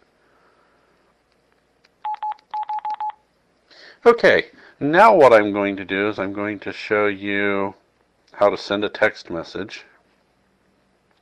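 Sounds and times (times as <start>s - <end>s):
faint noise: 0.0s - 11.1s
phone keypad button tones: 2.0s - 3.2s
speech: 4.0s - 9.9s.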